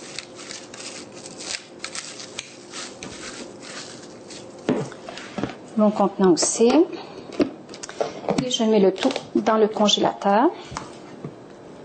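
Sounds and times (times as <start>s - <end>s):
plastic film stretched over a filled food container: 0.0s - 4.7s
speech: 5.8s - 7.0s, 8.4s - 10.8s.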